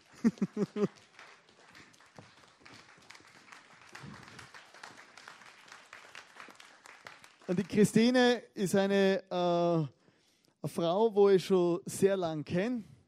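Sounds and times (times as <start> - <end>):
laughter: 0.0 - 1.1
crowd applause: 0.0 - 8.2
speech: 0.2 - 1.1, 7.5 - 10.0, 10.6 - 12.9.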